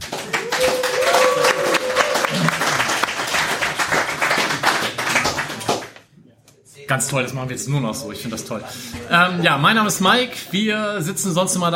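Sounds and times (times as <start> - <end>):
audience applause: 0.0 - 6.0
speech: 6.9 - 11.7.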